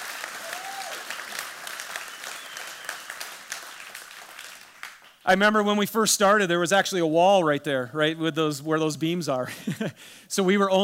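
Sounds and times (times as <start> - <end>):
audience applause: 0.0 - 5.2
speech: 5.3 - 10.8.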